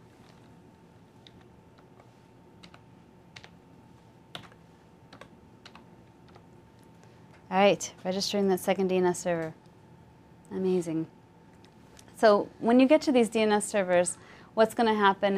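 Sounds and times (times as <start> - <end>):
soft steady hum: 0.0 - 15.3
faint keyboard typing: 1.2 - 3.6, 4.3 - 6.5
speech: 7.5 - 9.6, 10.5 - 11.2, 12.2 - 15.3.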